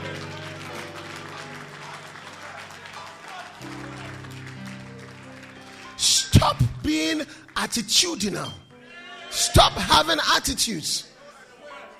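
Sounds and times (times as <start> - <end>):
audience clapping: 0.0 - 8.4
speech: 6.0 - 8.6, 9.3 - 11.1.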